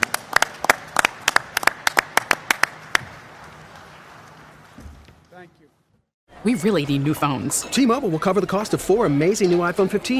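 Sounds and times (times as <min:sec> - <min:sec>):
audience applause: 0:00.0 - 0:03.4
speech: 0:06.4 - 0:10.1.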